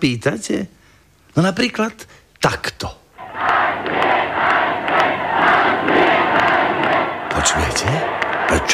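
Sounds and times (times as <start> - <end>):
speech: 0.0 - 0.8, 1.4 - 3.0, 7.4 - 8.7
crowd applauding: 3.2 - 8.7.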